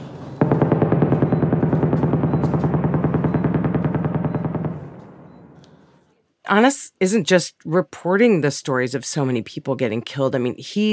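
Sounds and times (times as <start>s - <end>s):
heavy machine-gun fire during intensive shelling in southern Gaza: 0.0s - 5.4s
speech: 6.5s - 10.9s.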